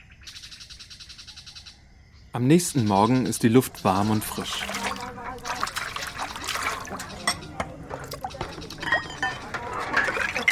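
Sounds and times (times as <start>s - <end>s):
speech: 2.3s - 4.8s
faint voices murmuring: 2.4s - 10.5s
running water: 3.4s - 10.5s
crockery clinking: 5.6s - 10.5s.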